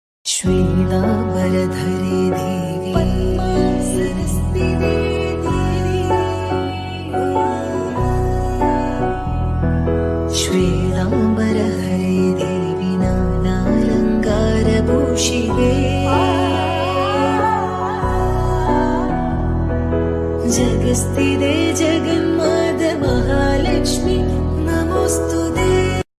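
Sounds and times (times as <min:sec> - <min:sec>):
devotional background music: 0:00.3 - 0:26.1.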